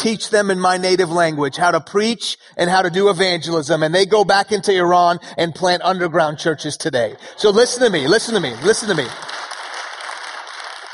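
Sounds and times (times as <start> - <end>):
speech: 0.0 - 9.4
audience clapping: 7.4 - 10.9.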